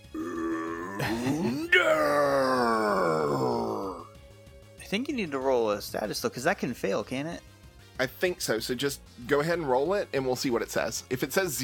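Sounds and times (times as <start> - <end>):
person imitating a creature's roar: 0.0 - 4.1
speech: 1.0 - 2.0, 4.9 - 11.6.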